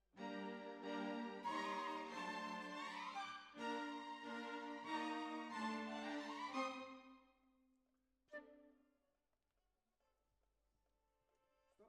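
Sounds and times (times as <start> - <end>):
oboe: 0.2 - 7.0.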